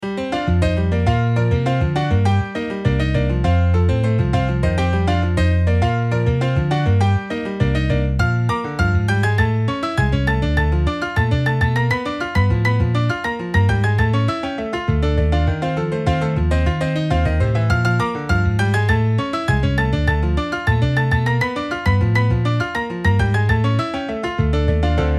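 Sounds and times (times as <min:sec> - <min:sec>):
salsa timba music: 0:00.3 - 0:25.1.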